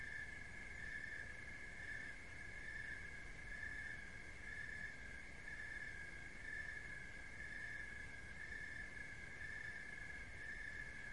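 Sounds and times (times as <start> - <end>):
cricket trilling in a steady buzz: 0.0 - 11.1.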